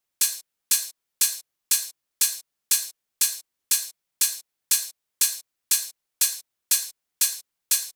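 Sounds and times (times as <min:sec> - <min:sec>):
open hi-hat in a nu disco groove: 0:00.2 - 0:07.9.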